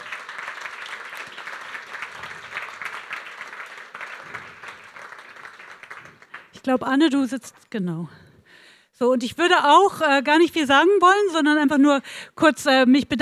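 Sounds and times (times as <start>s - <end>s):
audience applause: 0.0s - 6.6s
speech: 6.6s - 8.2s, 9.0s - 13.2s.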